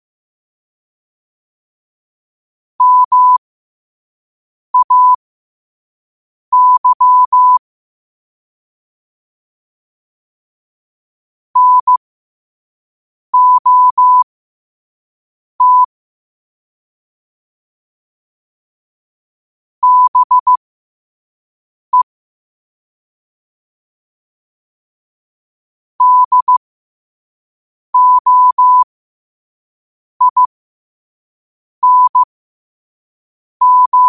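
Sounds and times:
morse code at 5 wpm: 0:02.8 - 0:03.4, 0:04.8 - 0:05.2, 0:06.5 - 0:07.6, 0:11.6 - 0:12.0, 0:13.4 - 0:14.2, 0:15.6 - 0:15.9, 0:19.8 - 0:20.6, 0:26.0 - 0:26.6, 0:28.0 - 0:28.8, 0:30.2 - 0:30.5, 0:31.8 - 0:32.3, 0:33.6 - 0:34.0.

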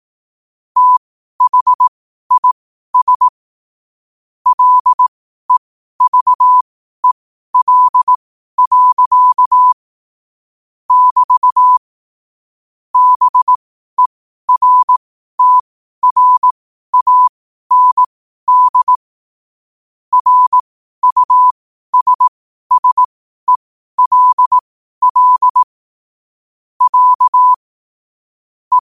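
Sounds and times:
morse code at 5 wpm: 0:00.8 - 0:03.4, 0:04.5 - 0:09.8, 0:10.9 - 0:11.8, 0:13.0 - 0:19.0, 0:20.1 - 0:25.7, 0:26.8 - 0:27.6.

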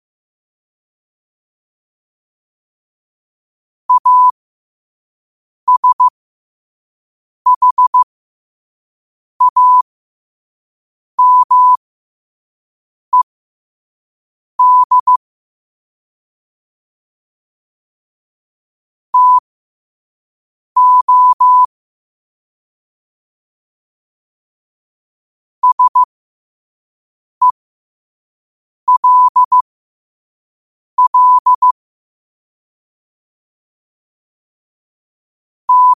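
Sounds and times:
morse code at 5 wpm: 0:03.9 - 0:04.3, 0:05.7 - 0:06.1, 0:07.5 - 0:08.0, 0:09.4 - 0:09.8, 0:11.2 - 0:11.8, 0:14.6 - 0:15.2, 0:19.2 - 0:19.4, 0:20.8 - 0:21.7, 0:25.6 - 0:26.1, 0:28.9 - 0:29.6, 0:31.0 - 0:31.8, 0:35.7 - 0:35.9.

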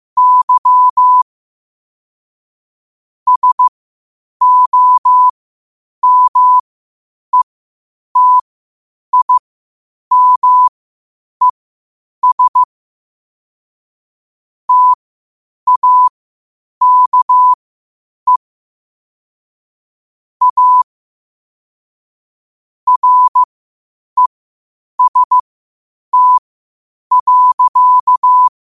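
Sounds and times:
morse code at 5 wpm: 0:00.2 - 0:01.2, 0:03.3 - 0:03.7, 0:04.4 - 0:05.3, 0:06.0 - 0:06.6, 0:08.2 - 0:08.4, 0:09.1 - 0:09.4, 0:10.1 - 0:10.7, 0:12.2 - 0:12.7, 0:14.7 - 0:15.0, 0:15.7 - 0:16.1, 0:16.8 - 0:17.6, 0:20.4 - 0:20.8, 0:22.9 - 0:23.5, 0:25.0 - 0:25.4, 0:26.1 - 0:26.4, 0:27.1 - 0:28.5.

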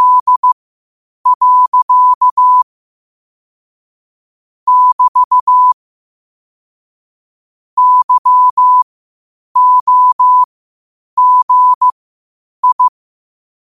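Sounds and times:
morse code at 5 wpm: 0:00.0 - 0:00.6, 0:01.3 - 0:02.6, 0:04.7 - 0:05.8, 0:07.8 - 0:08.8, 0:09.6 - 0:10.5, 0:11.2 - 0:11.9, 0:12.6 - 0:12.9.

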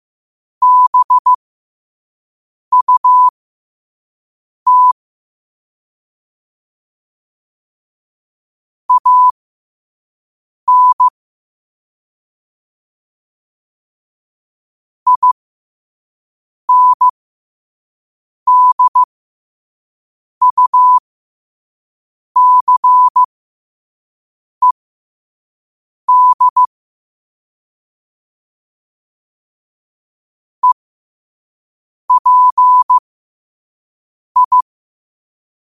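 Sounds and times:
morse code at 5 wpm: 0:00.6 - 0:01.4, 0:02.7 - 0:03.3, 0:04.7 - 0:05.0, 0:08.9 - 0:09.4, 0:10.7 - 0:11.1, 0:15.1 - 0:15.4, 0:16.7 - 0:17.1, 0:18.5 - 0:19.1, 0:20.4 - 0:21.0, 0:22.4 - 0:23.3, 0:26.1 - 0:26.7, 0:32.1 - 0:33.0, 0:34.4 - 0:34.6.

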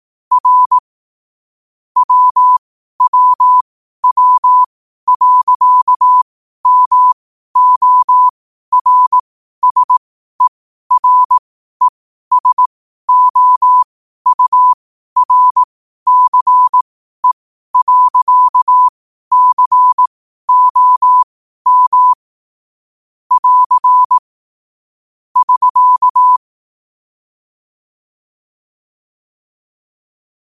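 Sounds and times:
morse code at 5 wpm: 0:00.3 - 0:00.8, 0:02.0 - 0:22.2, 0:23.3 - 0:24.2, 0:25.4 - 0:26.4.

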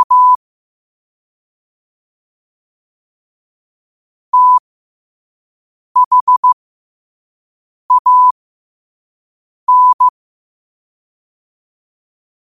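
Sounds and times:
morse code at 5 wpm: 0:00.0 - 0:00.4, 0:04.4 - 0:04.6, 0:06.0 - 0:06.6, 0:07.9 - 0:08.3, 0:09.7 - 0:10.1.

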